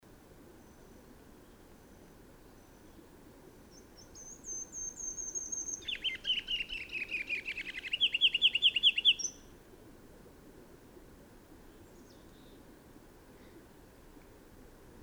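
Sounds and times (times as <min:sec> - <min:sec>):
bird singing bright down-slurred chirped notes: 0:03.7 - 0:09.4.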